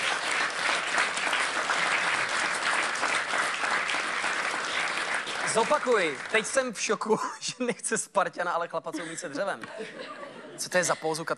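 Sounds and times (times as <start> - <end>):
big round of applause from many hands: 0.0 - 6.8
speech: 5.5 - 11.3
laughter: 8.9 - 11.2.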